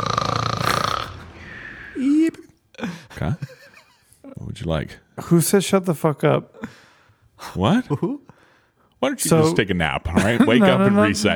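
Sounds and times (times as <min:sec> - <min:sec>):
replayed person snoring: 0:00.0 - 0:02.3
laughter: 0:02.3 - 0:04.4, 0:09.3 - 0:11.3
speech: 0:04.7 - 0:06.8, 0:07.6 - 0:08.2, 0:09.0 - 0:11.3.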